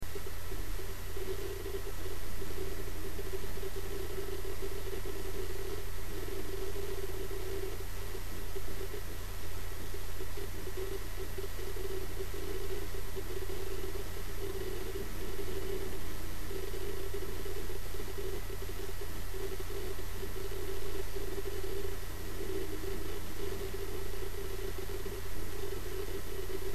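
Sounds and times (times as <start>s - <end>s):
Samsung hard disk drive: 0.0s - 26.7s.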